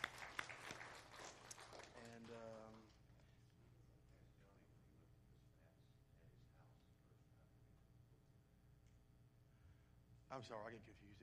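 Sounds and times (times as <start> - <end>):
audience applause: 0.0 - 3.0
speech: 10.3 - 11.2.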